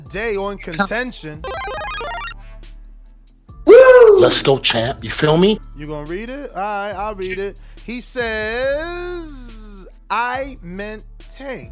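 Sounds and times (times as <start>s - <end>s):
speech: 0.1s - 1.9s, 4.2s - 9.5s, 10.1s - 11.7s
bright electronic alarm ringtone: 1.4s - 2.4s.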